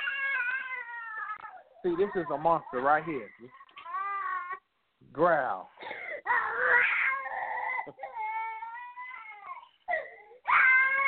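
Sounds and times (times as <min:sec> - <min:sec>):
child crying in a tantrum: 0:00.0 - 0:02.9, 0:03.5 - 0:04.7, 0:06.2 - 0:11.0
speech: 0:01.8 - 0:03.6, 0:05.0 - 0:06.0.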